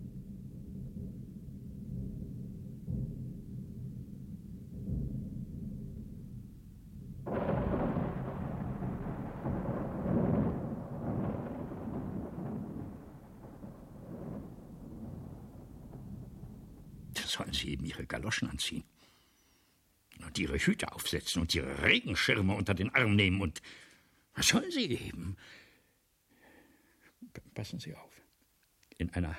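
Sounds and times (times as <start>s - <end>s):
thunder: 0.0s - 17.3s
rain: 7.2s - 17.6s
speech: 17.4s - 19.0s, 20.4s - 25.6s, 27.3s - 28.2s, 29.0s - 29.3s.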